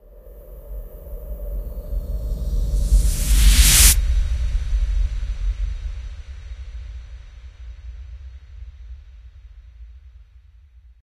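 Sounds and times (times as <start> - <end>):
swell: 0.9 - 7.1.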